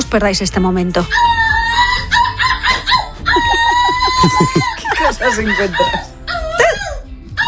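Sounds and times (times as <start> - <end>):
speech: 0.1 - 1.4, 5.2 - 6.1
person imitating a seagull call: 1.2 - 7.4
laughter: 3.2 - 6.0.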